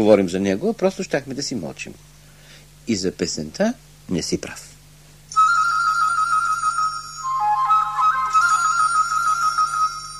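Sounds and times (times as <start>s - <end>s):
speech: 0.0s - 2.1s, 2.9s - 4.7s
low steady hum: 0.0s - 10.1s
canary imitating a nightingale's song: 5.3s - 10.1s.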